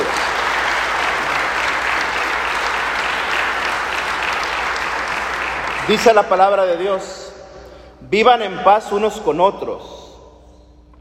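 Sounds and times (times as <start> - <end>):
audience applauding: 0.0 - 6.6
speech: 5.9 - 7.2, 8.0 - 10.0.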